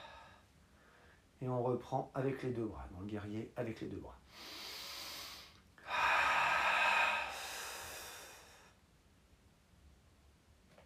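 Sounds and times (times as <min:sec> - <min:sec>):
deep inhale during a yoga breathing exercise in warrior pose: 0:00.0 - 0:01.3, 0:04.3 - 0:08.8
speech: 0:01.4 - 0:04.6.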